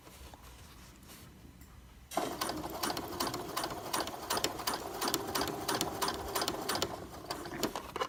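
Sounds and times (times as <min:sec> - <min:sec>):
sewing machine: 0:02.1 - 0:07.9.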